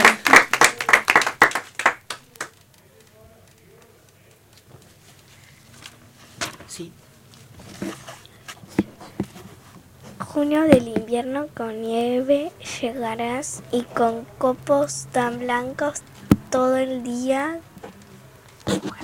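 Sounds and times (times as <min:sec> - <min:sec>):
applause: 0:00.0 - 0:02.6
speech: 0:06.8 - 0:07.0, 0:10.4 - 0:17.7.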